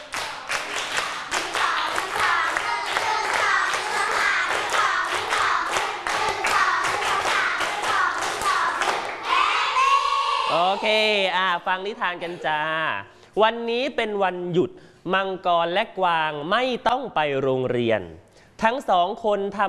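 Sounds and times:
children clapping a rhythmic clap pattern: 0.0 - 9.9
speech: 10.8 - 19.6.

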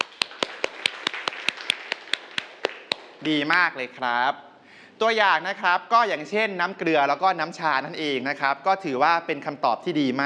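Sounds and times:
students clapping hands: 0.0 - 3.3
speech: 3.2 - 10.2.

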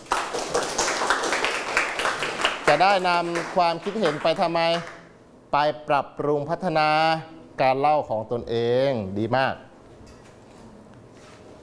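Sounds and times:
classroom group clapping hands: 0.0 - 5.2
speech: 2.7 - 9.7.

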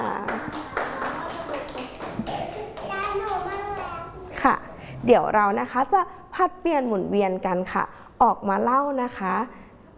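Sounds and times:
children clapping hands: 0.0 - 4.1
children chattering and calling out: 0.4 - 4.4
speech: 4.4 - 9.9.

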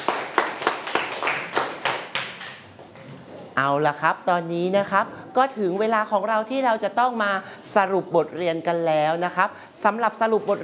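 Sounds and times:
people clapping: 0.0 - 2.9
speech: 3.6 - 10.6.

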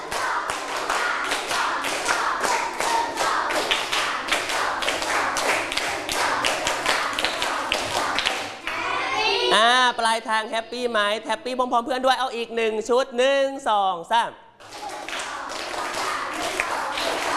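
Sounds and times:
group clapping hands: 0.0 - 9.2, 14.6 - 17.3
speech: 9.6 - 14.4.

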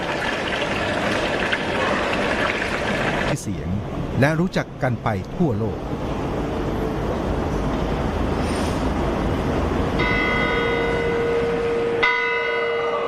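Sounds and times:
street noise: 0.0 - 13.0
speech: 3.4 - 6.1
clock tower bell chiming in old town: 10.0 - 13.0.

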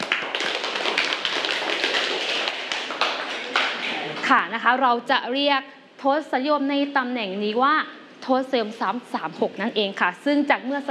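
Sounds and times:
group of students clapping in a classroom: 0.0 - 4.3
speech: 4.3 - 10.9.

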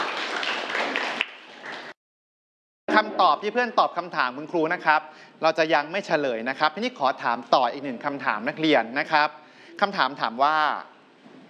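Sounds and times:
students clapping for a classmate in a classroom: 0.0 - 2.0
speech: 3.0 - 10.9.

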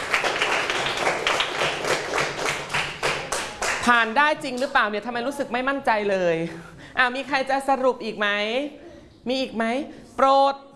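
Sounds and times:
small group clapping in a classroom: 0.0 - 4.1
speech: 3.8 - 10.7.

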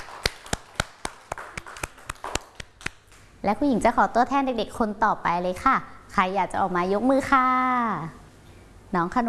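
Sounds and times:
children clapping: 0.0 - 3.3
speech: 3.4 - 8.2, 8.9 - 9.2.

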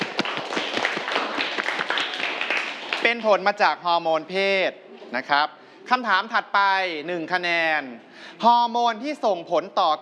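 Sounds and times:
students applauding in a classroom: 0.0 - 3.4
speech: 3.1 - 10.0.

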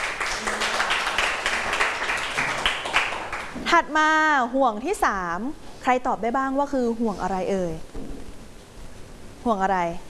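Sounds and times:
class of students applauding: 0.0 - 3.6
speech: 3.7 - 7.9, 9.4 - 10.0.

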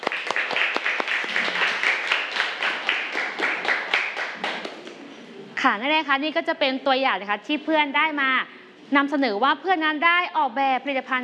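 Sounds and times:
applause for a student group: 0.0 - 5.0
speech: 5.6 - 11.2.

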